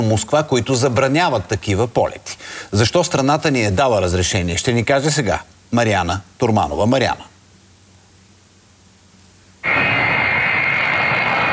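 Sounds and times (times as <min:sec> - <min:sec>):
speech: 0:00.0 - 0:07.3
Il-76 jet transport aircraft engines roaring: 0:09.6 - 0:11.5
high-pitched turbine whine: 0:09.6 - 0:11.5.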